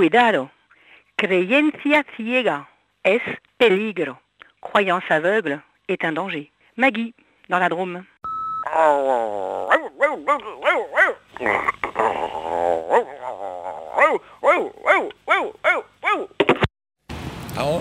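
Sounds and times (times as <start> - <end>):
speech: 0.0 - 0.6, 1.2 - 8.1, 8.7 - 16.7, 17.6 - 17.8
person imitating a barking dog in a phone message: 8.6 - 16.6.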